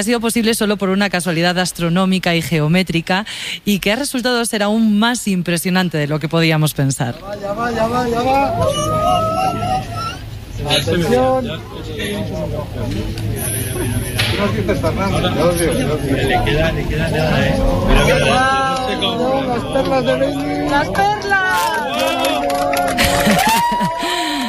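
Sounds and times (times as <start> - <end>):
speech: 0.0 - 24.4
laughter: 7.6 - 24.4
crowd cheering and whooping: 7.8 - 10.7, 17.5 - 24.4
crowd applauding at eclipse totality: 17.5 - 24.4.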